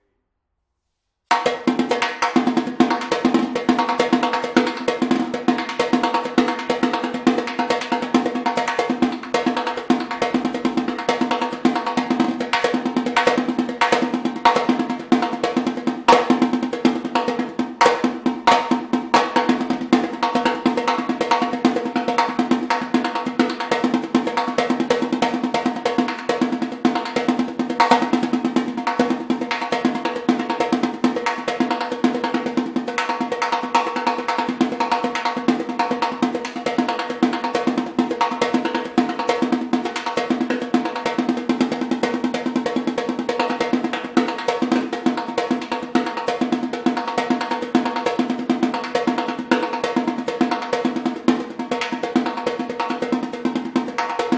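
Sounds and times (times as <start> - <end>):
repinique drum: 1.3 - 54.3.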